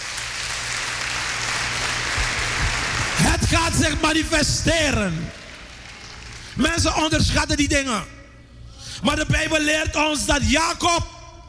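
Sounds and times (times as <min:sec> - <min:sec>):
audience giving thunderous applause: 0:00.0 - 0:07.1
speech: 0:03.7 - 0:05.4, 0:06.6 - 0:08.2, 0:09.0 - 0:11.1.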